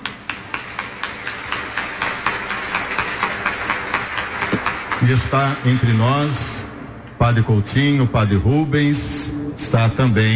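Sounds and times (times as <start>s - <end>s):
applause from audience: 0.3s - 6.6s
speech: 5.0s - 6.6s, 7.2s - 10.3s.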